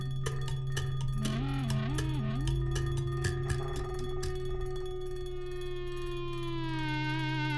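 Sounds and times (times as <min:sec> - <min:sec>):
EBow kalimba: 0:00.0 - 0:07.4.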